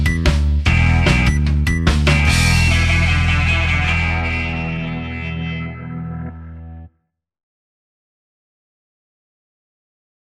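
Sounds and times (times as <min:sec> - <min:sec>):
Motown-style soul music: 0:00.0 - 0:06.9.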